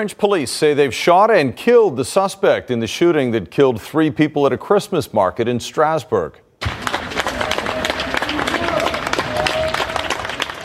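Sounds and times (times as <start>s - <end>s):
speech: 0.0s - 6.4s
bystanders applauding police team: 6.6s - 10.6s.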